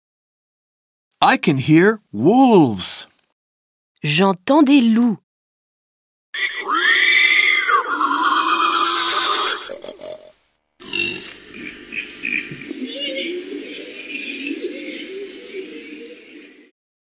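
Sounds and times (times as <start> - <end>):
speech: 1.2 - 3.1, 4.0 - 5.2, 6.4 - 6.8
wild boars grunting and squealing: 6.4 - 15.3.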